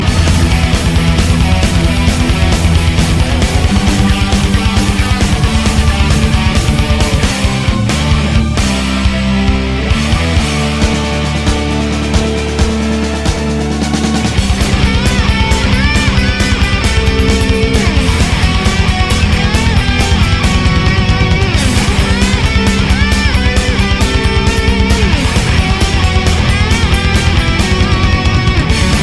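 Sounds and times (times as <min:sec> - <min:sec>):
power metal music: 0:00.0 - 0:29.0.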